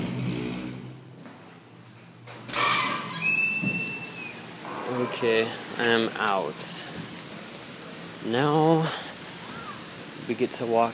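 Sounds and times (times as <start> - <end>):
door opening and closing: 2.3 - 5.9
speech: 5.2 - 7.0, 8.2 - 9.1, 10.3 - 10.9.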